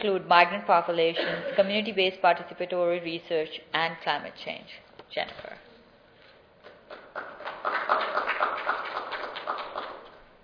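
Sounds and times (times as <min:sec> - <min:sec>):
speech: 0:00.0 - 0:05.7
audience applauding for arriving speaker: 0:06.7 - 0:10.3.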